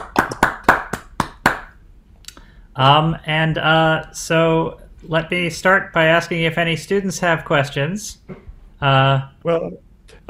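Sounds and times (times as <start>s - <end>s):
audience applause: 0.0s - 1.6s
speech: 2.8s - 10.2s.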